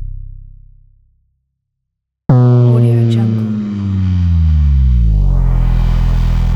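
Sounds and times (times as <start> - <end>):
textured slow motion impacts: 2.3 - 6.5.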